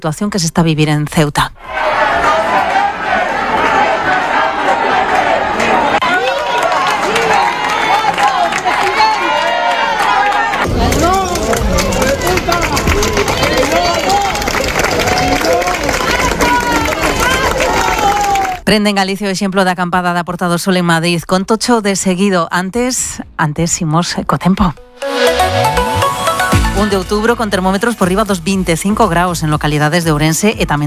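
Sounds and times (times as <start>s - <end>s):
speech: 0.0s - 1.8s, 18.7s - 25.8s, 26.8s - 30.8s
large crowd shouting and cheering: 1.6s - 18.6s, 25.0s - 27.3s
scattered clapping: 5.1s - 18.6s.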